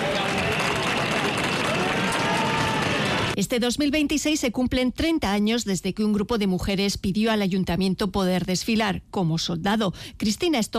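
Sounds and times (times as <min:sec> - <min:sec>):
applause: 0:00.0 - 0:03.4
crowd whistles: 0:00.0 - 0:03.4
speech: 0:03.4 - 0:10.7.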